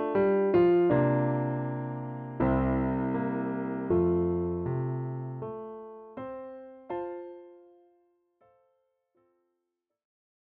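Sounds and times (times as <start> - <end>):
high piano accompaniment in F: 0.0 - 8.8.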